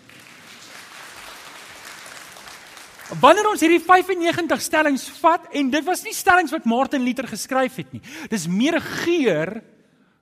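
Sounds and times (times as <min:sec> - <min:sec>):
applause: 0:00.0 - 0:03.8
speech: 0:03.1 - 0:09.8.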